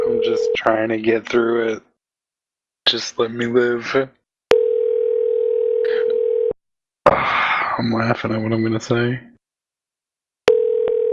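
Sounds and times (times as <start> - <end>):
speech: 0.2 - 1.9, 2.9 - 4.2, 7.8 - 9.3
telephone tone from a phone: 4.5 - 6.6, 10.5 - 11.1.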